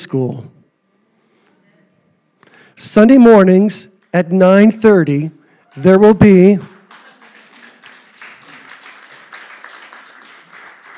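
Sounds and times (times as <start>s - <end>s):
speech: 0.0s - 0.6s, 2.8s - 6.7s
congregation applauding during a church sermon: 5.6s - 10.9s.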